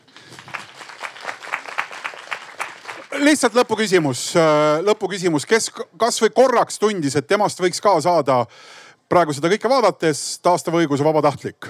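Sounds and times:
audience applause: 0.0 - 3.4
speech: 3.2 - 11.6.

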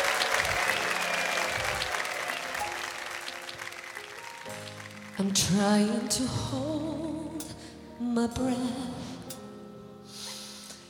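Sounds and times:
audience applause welcoming a singer onto the stage at a live show: 0.0 - 5.7
speech: 5.2 - 9.1.

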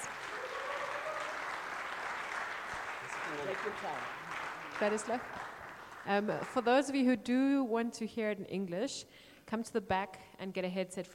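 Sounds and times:
sustained audience applause: 0.0 - 6.6
speech: 3.3 - 4.2, 4.8 - 11.1.

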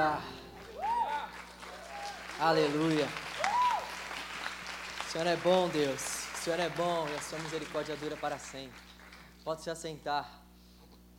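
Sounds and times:
speech: 0.0 - 0.4, 2.4 - 3.3, 5.2 - 10.4
audience applause: 0.5 - 9.3.

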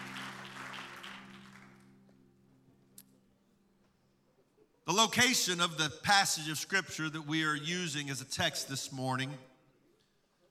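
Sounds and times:
audience clapping hands in praise: 0.0 - 2.1
held organ chord: 0.0 - 2.9
speech: 4.9 - 9.5.

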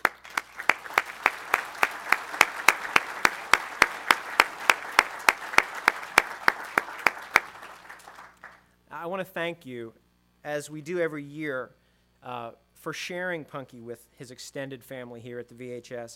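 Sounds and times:
audience applause: 0.0 - 8.6
speech: 9.0 - 16.1.

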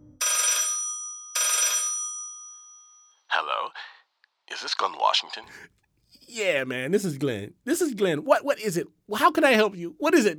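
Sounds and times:
telephone ringing: 0.1 - 2.6
speech: 3.4 - 10.3.

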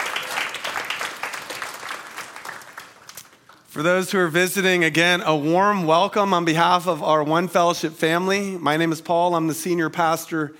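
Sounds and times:
crowd clapping: 0.0 - 3.7
speech: 3.8 - 10.5.

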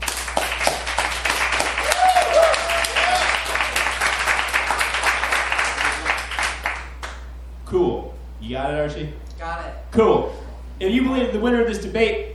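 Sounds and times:
audience applause: 0.0 - 7.2
people whooping: 1.2 - 6.4
speech: 8.6 - 12.3.

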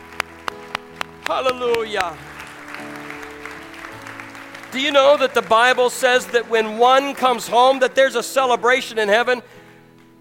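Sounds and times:
audience applause: 0.0 - 8.1
sustained low keyboard chords: 0.0 - 10.2
speech: 1.3 - 3.0, 4.7 - 9.6.

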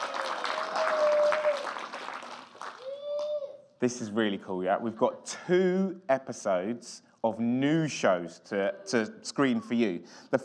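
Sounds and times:
whoops and cheers: 0.0 - 1.9, 2.6 - 3.6
audience round of applause: 0.0 - 3.4
speech: 3.8 - 10.4.

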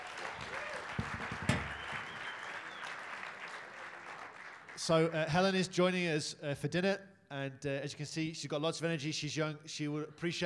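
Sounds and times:
round of applause: 0.0 - 5.1
speech: 4.8 - 10.4.

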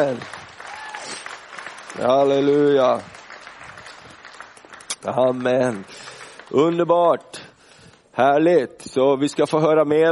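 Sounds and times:
speech: 0.0 - 0.4, 2.0 - 3.2, 5.0 - 7.4, 8.2 - 10.0
audience applause: 0.0 - 6.9.

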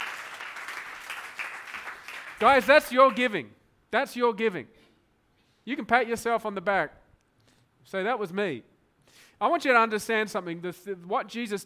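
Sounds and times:
audience clapping: 0.0 - 3.3
speech: 2.4 - 4.8, 5.6 - 7.0, 7.8 - 11.6.

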